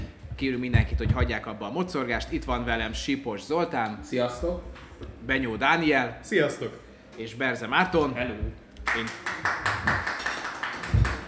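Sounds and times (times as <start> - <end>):
speech: 0.4 - 9.6
live audience applause: 8.9 - 11.2.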